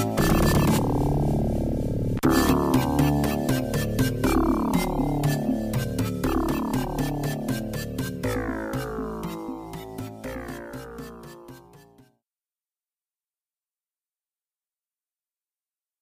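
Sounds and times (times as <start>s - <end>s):
ominous music: 0.0s - 12.0s.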